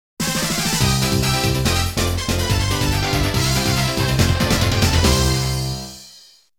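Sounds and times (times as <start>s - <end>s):
fanfare: 0.2s - 6.4s.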